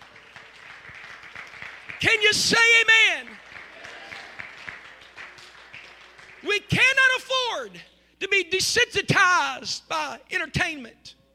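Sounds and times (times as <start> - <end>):
audience clapping: 0.0 - 7.0
speech: 2.0 - 3.4, 6.5 - 11.2.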